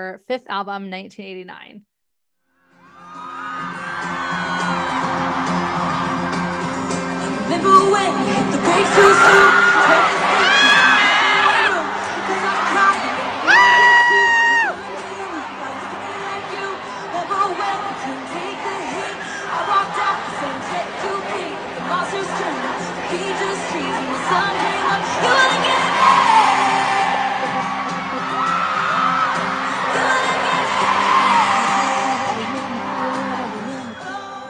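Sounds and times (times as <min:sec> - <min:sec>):
speech: 0:00.0 - 0:01.9
live concert crowd cheering and screaming: 0:02.7 - 0:34.4
person singing live concert song: 0:07.2 - 0:27.7, 0:29.5 - 0:34.4.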